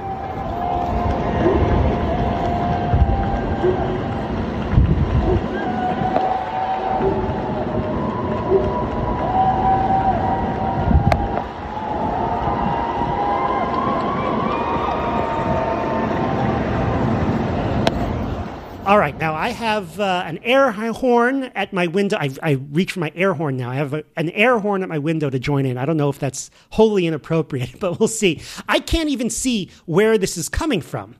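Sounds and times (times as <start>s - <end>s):
neighbourhood clapping and shouting: 0.0s - 18.0s
outdoor neighbourhood cheering: 0.0s - 21.9s
speech: 19.5s - 31.1s.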